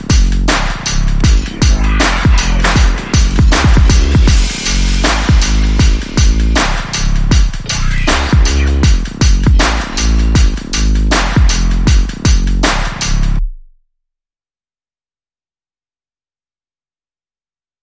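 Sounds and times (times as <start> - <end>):
groove: 0.0 - 13.5
bass: 0.0 - 13.8.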